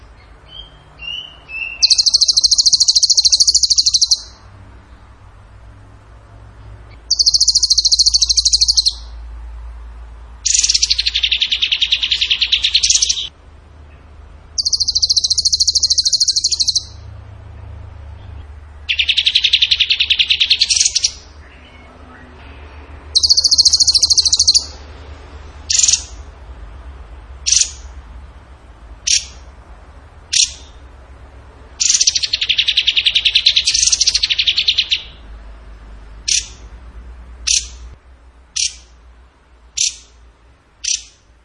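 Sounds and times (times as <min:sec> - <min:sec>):
bird trilling: 0:00.0 - 0:04.5, 0:06.9 - 0:09.2, 0:10.4 - 0:13.3, 0:13.9 - 0:17.1, 0:18.9 - 0:24.8, 0:25.6 - 0:26.3, 0:27.4 - 0:28.0, 0:29.0 - 0:29.5, 0:30.3 - 0:30.8, 0:31.8 - 0:35.2, 0:36.2 - 0:36.7, 0:37.4 - 0:37.8, 0:38.6 - 0:39.0, 0:39.8 - 0:40.2, 0:40.8 - 0:41.3.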